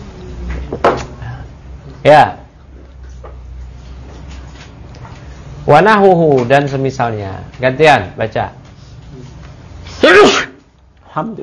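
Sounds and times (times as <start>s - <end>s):
speech: 2.0s - 2.4s, 5.7s - 8.6s, 11.2s - 11.4s
single loud sneeze with a breathy blast: 9.9s - 10.6s.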